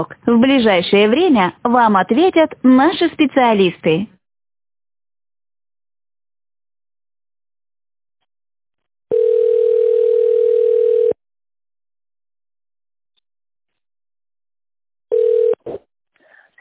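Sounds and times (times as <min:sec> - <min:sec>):
speech: 0:00.0 - 0:04.2
telephone ringback tone: 0:09.1 - 0:11.2, 0:15.1 - 0:15.6.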